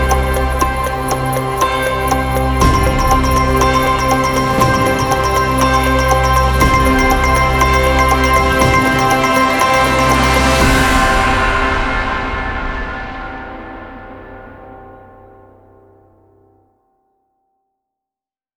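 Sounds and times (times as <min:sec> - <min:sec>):
ranked matchmaking game music: 0:00.0 - 0:11.9.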